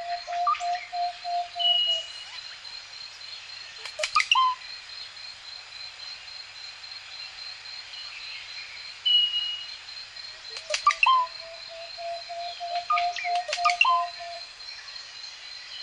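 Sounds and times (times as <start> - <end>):
cuckoo in forest: 0.0 - 2.4, 3.8 - 4.6, 10.5 - 14.5.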